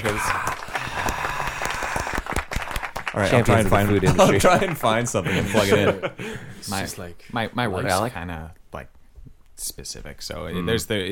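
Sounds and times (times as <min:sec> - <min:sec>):
round of applause added in post: 0:00.0 - 0:04.9
speech: 0:00.1 - 0:00.4, 0:03.2 - 0:09.0, 0:09.6 - 0:11.1
laughter: 0:03.4 - 0:06.6.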